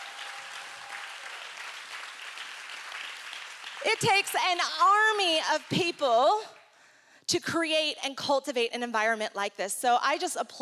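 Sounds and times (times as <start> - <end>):
crowd applause: 0.0 - 4.6
speech: 3.8 - 6.6, 7.3 - 10.6.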